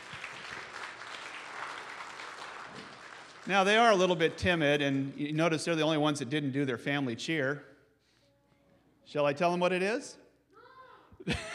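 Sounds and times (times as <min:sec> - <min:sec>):
audience applause: 0:00.0 - 0:04.3
speech: 0:03.4 - 0:07.7, 0:09.1 - 0:10.2, 0:11.2 - 0:11.5.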